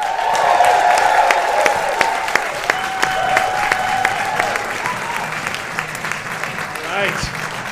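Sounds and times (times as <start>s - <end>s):
whoops and cheers: 0.0s - 5.5s
audience applauding: 0.0s - 7.7s.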